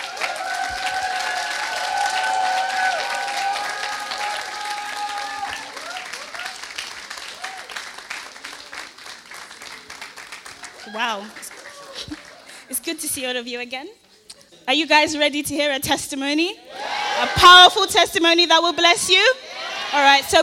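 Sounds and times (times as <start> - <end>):
church audience clapping: 0.0 - 12.7
speech: 12.9 - 14.0, 14.7 - 20.4.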